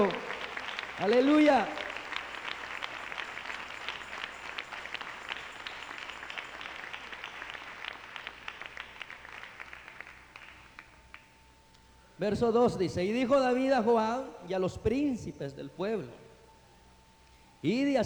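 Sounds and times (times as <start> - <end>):
speech: 0.0 - 0.3, 1.0 - 1.8, 12.2 - 16.2, 17.6 - 18.0
audience applause: 0.0 - 11.2.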